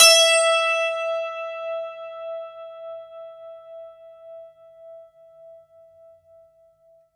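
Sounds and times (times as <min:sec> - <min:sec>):
santoor: 0:00.0 - 0:04.4.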